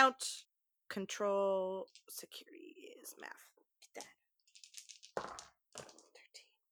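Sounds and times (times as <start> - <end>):
speech: 0.0 - 4.2
dice rattling in a cupped hand: 1.9 - 2.3, 3.9 - 6.3.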